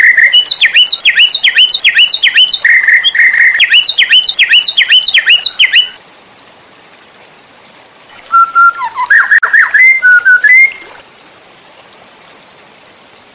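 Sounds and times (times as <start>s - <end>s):
white-rumped shama song: 0.0s - 6.0s, 8.3s - 10.9s.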